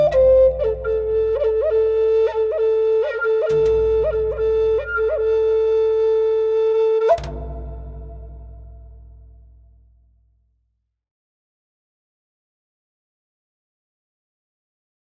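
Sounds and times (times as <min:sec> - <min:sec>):
new age music: 0:00.0 - 0:09.6.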